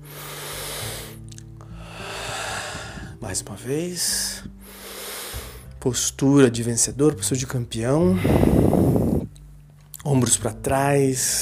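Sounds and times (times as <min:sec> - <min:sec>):
deep breath drawn in: 0:00.0 - 0:03.2, 0:04.4 - 0:05.8, 0:08.1 - 0:09.3
slow steady exhale: 0:00.0 - 0:03.2, 0:04.6 - 0:05.7, 0:08.1 - 0:09.3
speech: 0:03.2 - 0:04.8, 0:05.8 - 0:09.0, 0:10.2 - 0:11.4.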